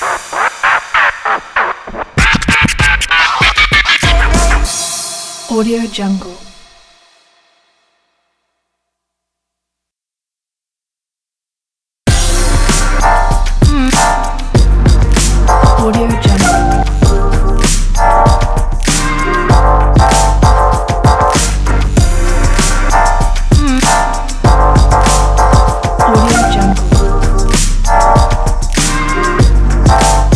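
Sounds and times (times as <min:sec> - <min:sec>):
old school hip hop music: 0:00.0 - 0:05.4, 0:12.1 - 0:30.3.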